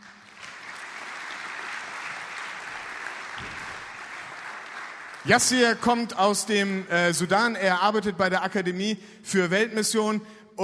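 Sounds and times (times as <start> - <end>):
audience applause: 0.0 - 6.8
speech: 5.2 - 10.6.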